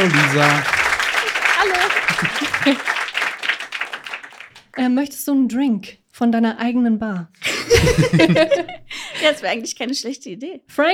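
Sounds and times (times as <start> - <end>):
speech: 0.0 - 0.8, 1.6 - 2.9, 4.8 - 10.9
laughter: 0.0 - 4.4, 7.4 - 9.4
audience applause for a guest on a live show: 0.0 - 4.8.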